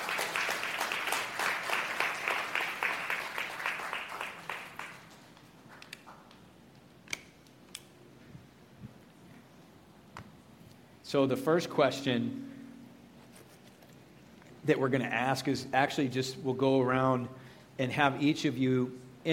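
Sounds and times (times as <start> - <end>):
audience applause: 0.0 - 5.3
speech: 11.1 - 12.5, 14.7 - 19.3.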